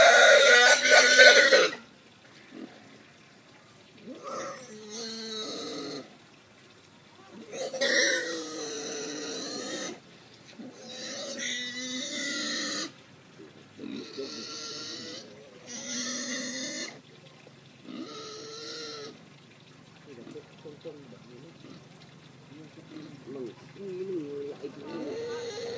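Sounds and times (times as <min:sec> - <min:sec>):
pig being gagged at slaughter: 0:00.0 - 0:01.8, 0:04.1 - 0:06.1, 0:07.4 - 0:10.0, 0:10.6 - 0:13.0, 0:13.8 - 0:17.0, 0:17.9 - 0:19.2, 0:24.8 - 0:25.7.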